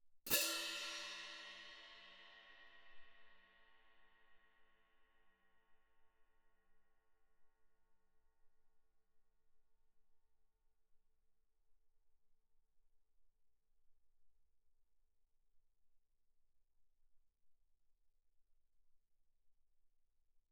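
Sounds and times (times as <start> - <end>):
orchestral crash cymbals played mezzo forte: 0.3 - 3.4.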